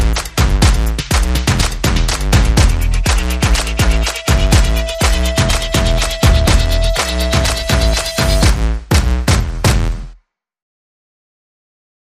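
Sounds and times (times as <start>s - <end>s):
bass: 0.0s - 10.2s
percussion: 0.0s - 10.2s
sound effects: 2.6s - 8.6s.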